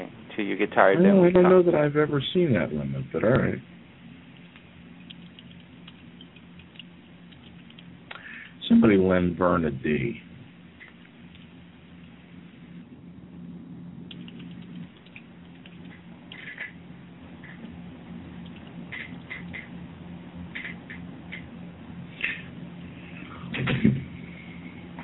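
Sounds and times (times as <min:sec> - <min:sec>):
speech: 0:00.4 - 0:03.8, 0:08.8 - 0:10.3
typing on a keyboard: 0:14.1 - 0:15.8.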